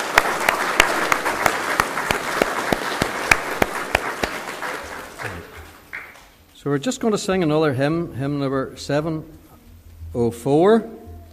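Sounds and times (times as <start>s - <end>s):
audience applause: 0.0s - 6.3s
speech: 6.6s - 9.4s, 10.1s - 11.0s.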